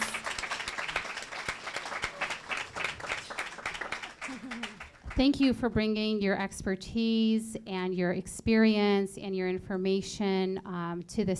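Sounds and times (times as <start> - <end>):
audience applause: 0.0 - 5.2
speech: 5.2 - 11.3.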